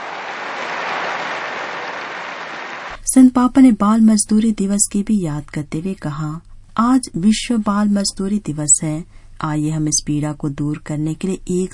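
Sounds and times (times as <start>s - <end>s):
applause: 0.0s - 3.0s
speech: 3.1s - 11.7s.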